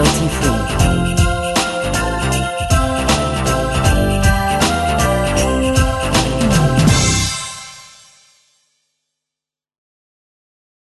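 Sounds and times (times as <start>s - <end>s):
pop music: 0.0s - 7.8s.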